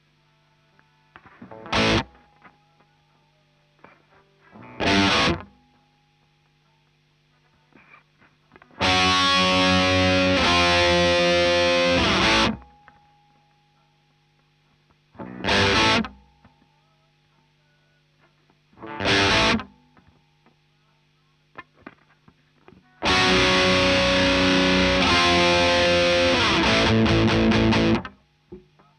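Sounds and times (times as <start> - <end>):
guitar: 0.7 - 3.0, 3.8 - 6.2, 7.4 - 13.6, 14.9 - 16.8, 18.2 - 20.6, 21.5 - 28.7.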